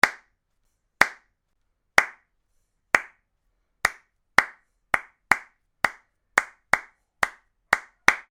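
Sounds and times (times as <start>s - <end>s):
hand clapping: 0.0s - 0.3s, 1.0s - 1.3s, 2.0s - 2.3s, 3.0s - 3.2s, 3.8s - 8.3s.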